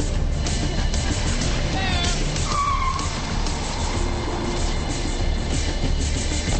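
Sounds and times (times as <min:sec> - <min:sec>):
car engine rumble: 0:00.0 - 0:06.5
tire squeal: 0:02.0 - 0:06.0.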